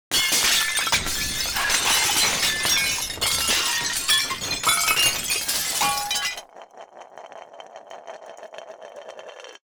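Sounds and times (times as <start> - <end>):
big dishes crashing: 0.1 - 6.5.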